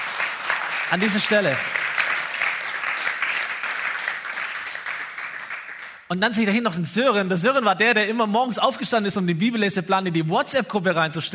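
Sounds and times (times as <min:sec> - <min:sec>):
audience applause: 0:00.0 - 0:06.0
speech: 0:00.9 - 0:01.8, 0:06.1 - 0:11.3.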